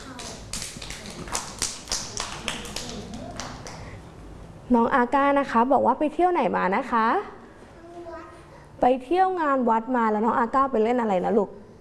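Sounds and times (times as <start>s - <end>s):
children clapping: 0.0s - 3.9s
speech: 4.7s - 7.4s, 8.8s - 11.6s.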